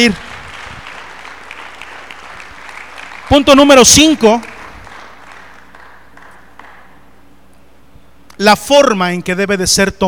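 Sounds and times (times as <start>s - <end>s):
speech: 0.0s - 0.3s, 3.3s - 4.5s, 8.4s - 10.0s
audience applause: 0.0s - 7.0s.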